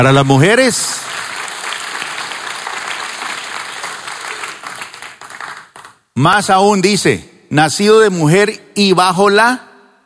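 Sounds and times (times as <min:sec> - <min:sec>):
speech: 0:00.0 - 0:01.3, 0:06.2 - 0:09.7
audience applause: 0:00.0 - 0:06.0.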